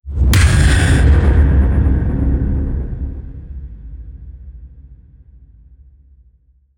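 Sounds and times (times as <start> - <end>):
rising tension build: 0.4 - 3.5
impact hit: 0.4 - 3.7.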